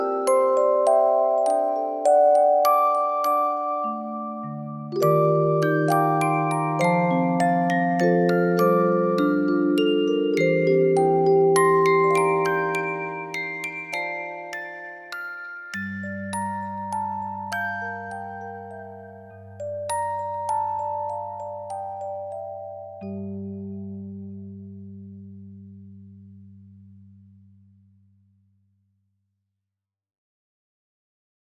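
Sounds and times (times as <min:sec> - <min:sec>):
music box melody: 0:00.0 - 0:24.0.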